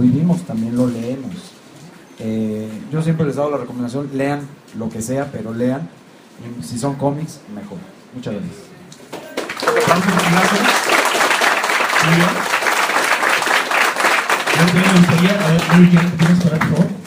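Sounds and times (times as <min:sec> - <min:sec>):
speech: 0:00.0 - 0:01.5, 0:02.2 - 0:08.7, 0:09.8 - 0:10.8, 0:12.0 - 0:12.5, 0:14.6 - 0:17.0
audience applause: 0:09.1 - 0:17.0.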